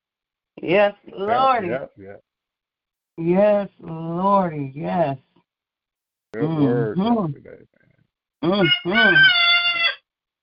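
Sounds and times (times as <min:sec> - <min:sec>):
speech: 0:00.6 - 0:02.3, 0:03.2 - 0:05.3, 0:06.3 - 0:07.7, 0:08.4 - 0:09.5
person imitating rooster crow: 0:08.4 - 0:10.0.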